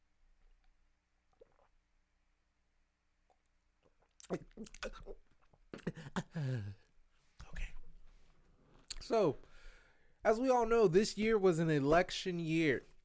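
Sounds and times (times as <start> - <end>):
person sipping a drink: 1.3 - 1.8
speech: 4.3 - 6.8, 9.1 - 9.5, 10.2 - 12.9.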